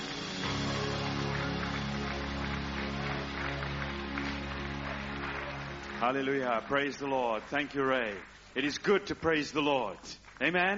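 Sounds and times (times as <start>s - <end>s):
sustained music with strong low held tones: 0.0s - 8.1s
crowd clapping: 0.0s - 10.7s
speech: 6.0s - 10.7s.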